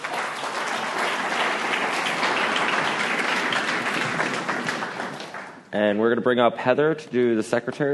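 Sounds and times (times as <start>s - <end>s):
audience applause at a recovery group meeting: 0.0s - 5.6s
speech: 5.8s - 7.9s.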